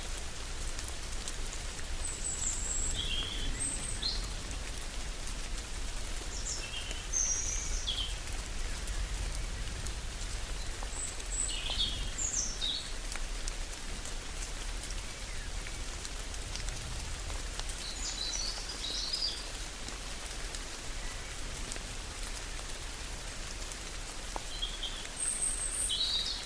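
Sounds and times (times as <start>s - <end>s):
rainstorm in a chestnut grove: 0.0s - 26.4s.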